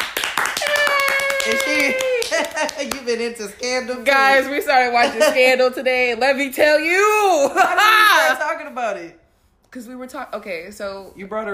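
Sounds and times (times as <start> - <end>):
clapping: 0.0 - 3.1
speech: 1.8 - 11.5.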